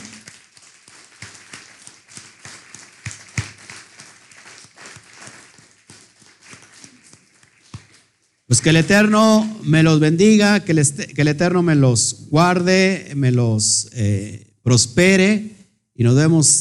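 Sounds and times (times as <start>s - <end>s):
audience applause: 0.0s - 9.0s
speech: 8.5s - 16.5s.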